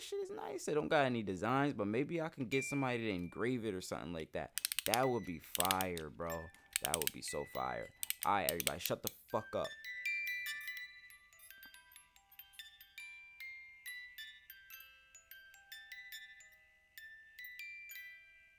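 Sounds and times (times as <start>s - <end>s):
speech: 0.0s - 9.9s
wind-up music box playing a tinkling tune: 4.6s - 18.5s.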